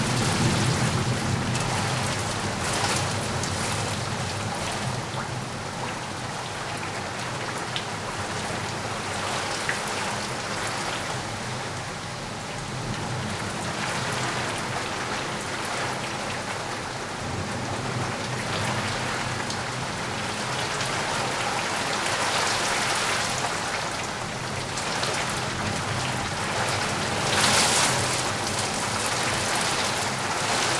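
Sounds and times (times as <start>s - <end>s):
pleasant rain: 0.0s - 30.7s.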